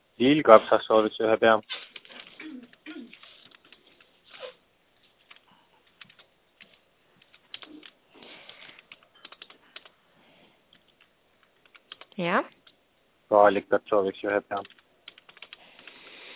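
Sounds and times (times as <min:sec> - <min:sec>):
speech: 0:00.2 - 0:01.9, 0:12.2 - 0:12.6, 0:13.3 - 0:14.8
typing a grocery order on a computer keyboard: 0:02.0 - 0:04.1, 0:05.2 - 0:09.9, 0:10.7 - 0:12.8, 0:14.5 - 0:16.3.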